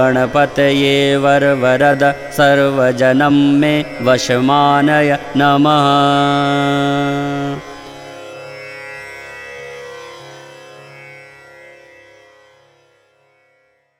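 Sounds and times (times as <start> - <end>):
mantra chanting: 0.0 - 7.8.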